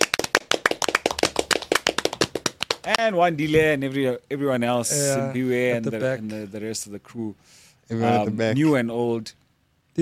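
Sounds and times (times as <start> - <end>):
round of applause from a small group: 0.0 - 3.1
speech: 2.8 - 9.4.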